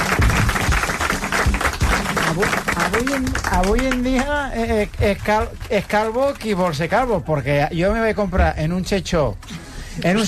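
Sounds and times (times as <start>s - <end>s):
applause: 0.0s - 6.8s
speech: 2.4s - 10.2s.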